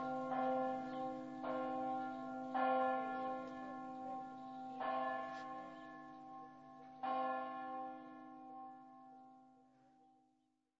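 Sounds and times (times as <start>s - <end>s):
bells ringing: 0.0s - 7.9s.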